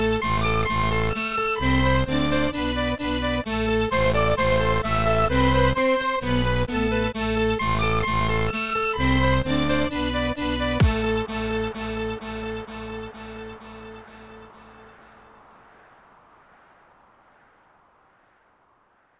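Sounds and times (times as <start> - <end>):
violin: 0.0 - 14.9.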